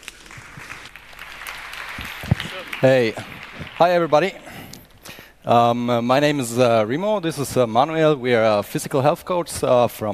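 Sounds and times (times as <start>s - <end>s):
audience clapping for two physical health coaches at an event: 0.0s - 5.2s
speech: 2.8s - 4.4s, 5.5s - 10.1s.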